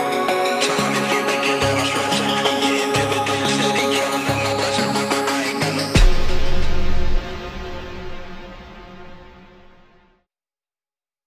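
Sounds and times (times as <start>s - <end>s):
hip hop song with claps at 105 bpm: 0.0s - 7.5s.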